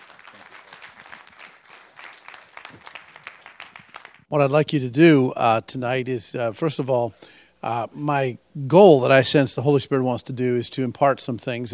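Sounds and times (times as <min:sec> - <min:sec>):
audience applause: 0:00.0 - 0:04.3
speech: 0:04.3 - 0:11.7.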